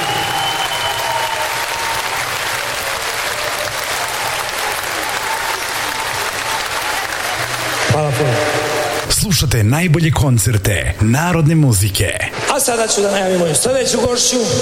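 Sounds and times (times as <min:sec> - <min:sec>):
large crowd applauding at a folk music concert in an arena: 0:00.0 - 0:09.2
speech: 0:09.3 - 0:14.6.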